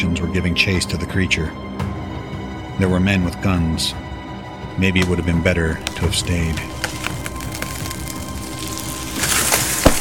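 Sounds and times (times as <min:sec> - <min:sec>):
speech: 0:00.0 - 0:01.8, 0:02.8 - 0:04.1, 0:04.8 - 0:06.8
wood cracking and splintering: 0:05.1 - 0:09.9
large tree crashing to the ground: 0:05.7 - 0:09.9.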